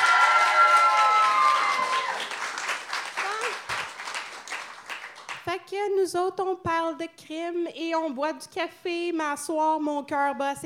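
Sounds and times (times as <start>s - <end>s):
whoops and cheers: 0.0s - 2.4s
audience applause: 0.0s - 5.4s
speech: 5.7s - 10.6s.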